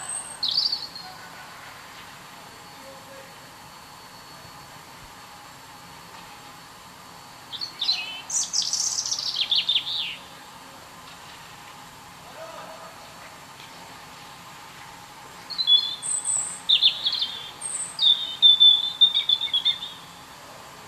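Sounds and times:
European robin song: 0.0s - 1.3s, 7.4s - 10.6s, 15.4s - 20.3s.

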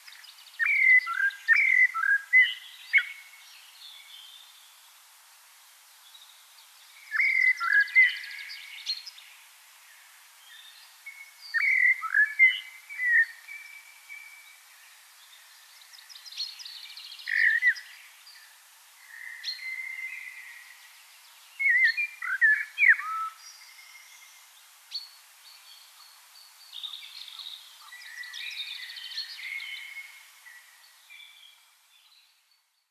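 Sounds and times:
steady hiss: 0.0s - 32.8s
common blackbird singing: 0.1s - 3.3s, 7.0s - 9.1s, 10.5s - 14.4s, 15.9s - 18.4s, 21.6s - 24.3s, 26.8s - 32.3s.

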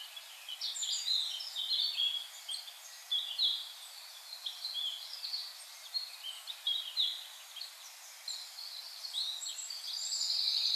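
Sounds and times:
common blackbird singing: 0.0s - 10.7s.

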